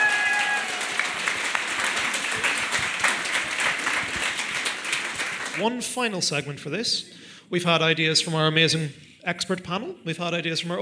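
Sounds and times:
audience applause: 0:00.0 - 0:05.7
speech: 0:05.6 - 0:10.7.

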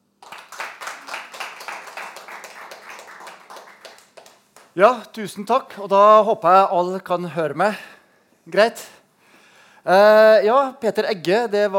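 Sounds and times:
audience applause: 0:00.2 - 0:04.8
speech: 0:04.8 - 0:07.9, 0:08.5 - 0:09.0, 0:09.8 - 0:11.7.

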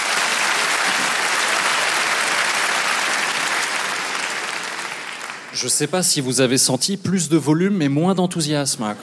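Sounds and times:
audience applause: 0:00.0 - 0:05.6
speech: 0:05.6 - 0:09.0.

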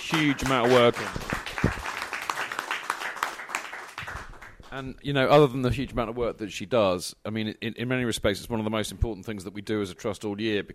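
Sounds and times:
audience applause: 0:00.0 - 0:04.7
speech: 0:00.1 - 0:01.8, 0:04.7 - 0:10.7.

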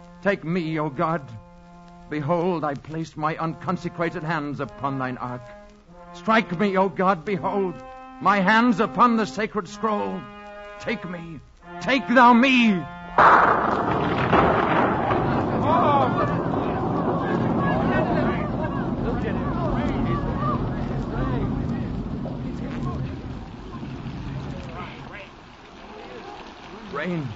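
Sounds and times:
heavy rain: 0:00.0 - 0:27.3
speech: 0:00.2 - 0:01.4, 0:02.1 - 0:05.6, 0:06.2 - 0:14.4
crowd murmuring and calling out: 0:13.7 - 0:27.3.

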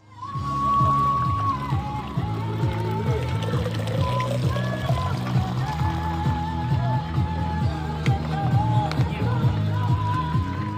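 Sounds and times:
rhythmic background music: 0:00.2 - 0:10.7
water pouring into a bottle at a marathon aid station: 0:00.7 - 0:07.2.

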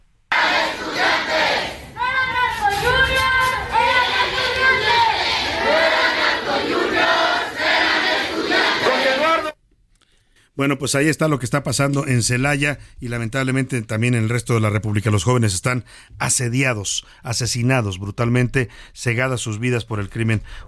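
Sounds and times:
crowd of students protesting: 0:00.3 - 0:09.6
speech: 0:10.6 - 0:20.6.

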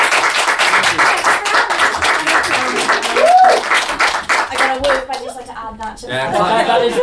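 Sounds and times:
audience clapping: 0:00.0 - 0:05.4
audience woo cheer: 0:02.7 - 0:03.8
laughter: 0:06.1 - 0:07.0.

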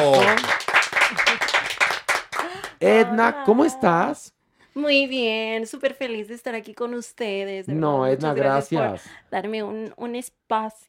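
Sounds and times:
speech: 0:00.0 - 0:00.6, 0:02.8 - 0:10.8
audience applause: 0:00.0 - 0:03.0.

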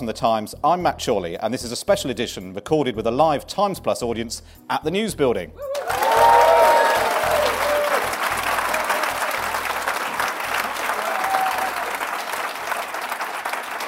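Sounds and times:
speech: 0:00.0 - 0:06.0
audience applause: 0:05.7 - 0:13.8.

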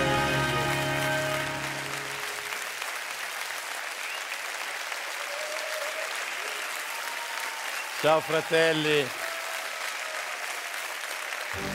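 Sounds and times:
audience applause: 0:00.0 - 0:11.7
speech: 0:08.0 - 0:09.2.

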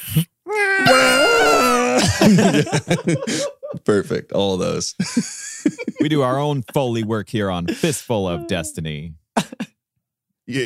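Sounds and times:
speech: 0:00.1 - 0:00.3, 0:02.4 - 0:09.6, 0:10.5 - 0:10.6
vocal imitation of a goat screaming: 0:00.5 - 0:02.1
laughter: 0:01.0 - 0:04.3, 0:04.9 - 0:06.6, 0:09.4 - 0:09.7.

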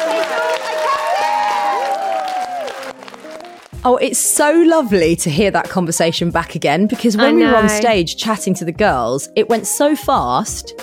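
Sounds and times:
live audience whooping and shouting: 0:00.0 - 0:03.0
live audience clapping: 0:00.0 - 0:03.9
speech: 0:03.8 - 0:10.8.

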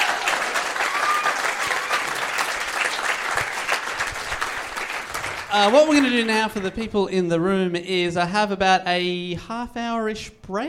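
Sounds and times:
audience applause: 0:00.0 - 0:06.7
speech: 0:05.5 - 0:10.6.

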